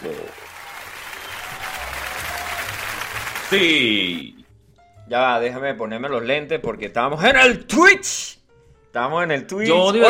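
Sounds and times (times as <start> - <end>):
audience applause: 0.0 - 4.2
speech: 3.5 - 4.4, 5.1 - 10.0.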